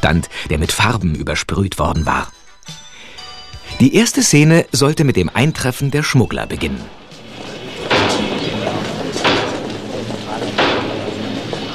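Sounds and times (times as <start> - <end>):
speech: 0.0 - 2.8, 3.7 - 7.0
hammering: 7.1 - 11.7.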